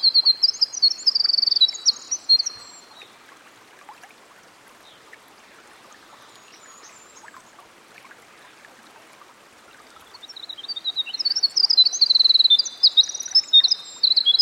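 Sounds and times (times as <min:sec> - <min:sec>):
winter wren singing by a stream: 0:00.0 - 0:03.0, 0:10.2 - 0:14.4.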